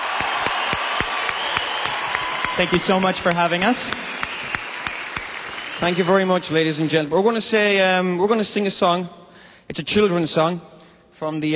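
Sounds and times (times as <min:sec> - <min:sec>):
large audience applause: 0:00.0 - 0:06.9
speech: 0:02.6 - 0:04.2, 0:05.8 - 0:11.5.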